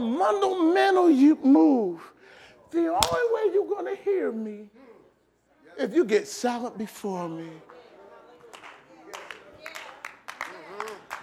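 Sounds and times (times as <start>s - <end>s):
speech: 0.0s - 2.1s, 2.7s - 4.9s, 5.8s - 7.7s
audience clapping: 8.4s - 11.2s.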